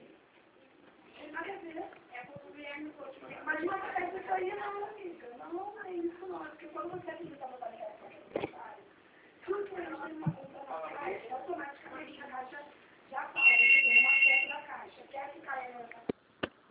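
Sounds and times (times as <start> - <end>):
people talking: 1.2 - 16.1
telephone ringing: 13.4 - 14.7.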